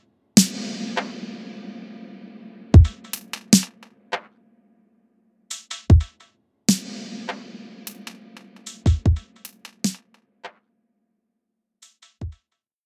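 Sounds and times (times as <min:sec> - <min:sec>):
drums: 0:00.0 - 0:04.3, 0:05.5 - 0:10.1, 0:11.8 - 0:12.4.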